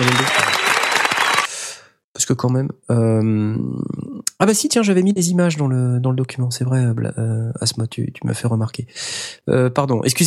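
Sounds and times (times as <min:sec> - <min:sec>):
hand clapping: 0:00.0 - 0:01.5
speech: 0:02.3 - 0:10.2.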